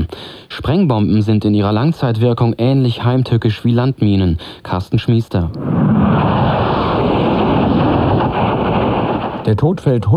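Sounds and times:
speech: 0.2s - 6.2s, 9.5s - 10.1s
military jet aircraft flying overhead: 5.5s - 9.5s.

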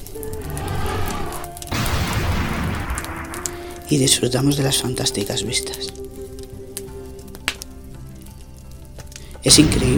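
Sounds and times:
low even hum: 0.0s - 3.9s
rivers of lava rushing like flowing water: 0.0s - 3.9s
lava crackling pops and sizzle: 0.0s - 9.9s
speech: 3.9s - 6.0s, 9.4s - 9.9s.

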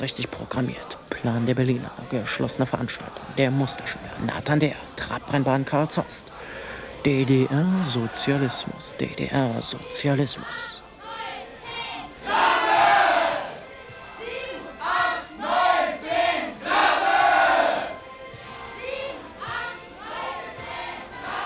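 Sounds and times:
speech: 0.0s - 10.8s
large crowd roaring and shouting: 6.8s - 9.1s, 11.0s - 18.0s, 18.6s - 21.4s.

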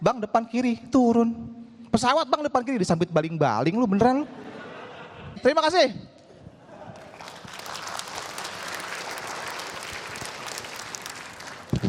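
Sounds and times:
speech: 0.0s - 4.6s, 5.4s - 6.1s
laughter: 4.2s - 5.4s, 6.4s - 7.5s
crowd audience applause: 7.0s - 11.8s.

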